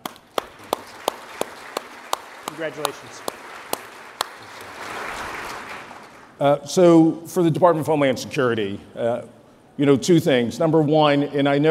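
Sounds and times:
audience applause: 0:00.0 - 0:06.4
speech: 0:02.6 - 0:03.4, 0:06.4 - 0:11.6.

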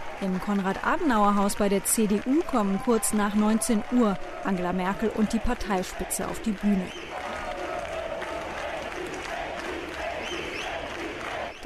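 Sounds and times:
CDU party crowd applauding: 0:00.0 - 0:11.6
speech: 0:00.2 - 0:07.1
crowd shouts and whistles: 0:10.1 - 0:11.6.

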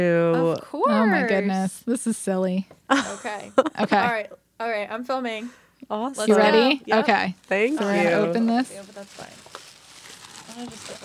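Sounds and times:
speech: 0:00.0 - 0:09.5, 0:10.6 - 0:11.0
tissue paper crinkling: 0:07.0 - 0:11.0.

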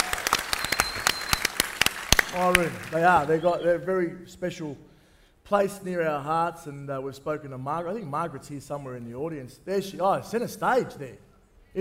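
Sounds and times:
audience applause: 0:00.0 - 0:03.6
speech: 0:02.3 - 0:04.9, 0:05.5 - 0:11.7.

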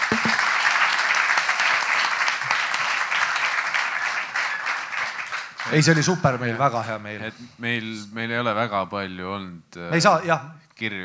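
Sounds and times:
audience applause: 0:00.0 - 0:06.1
speech: 0:05.7 - 0:11.0.

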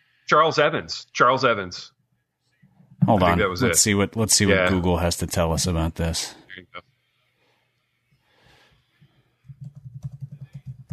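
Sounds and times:
speech: 0:00.3 - 0:02.0, 0:03.0 - 0:06.9
typing on a computer keyboard: 0:09.4 - 0:10.9.

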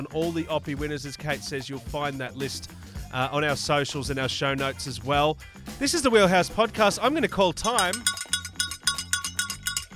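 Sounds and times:
speech: 0:00.0 - 0:08.2
bright metallic bell dings: 0:07.6 - 0:09.9.

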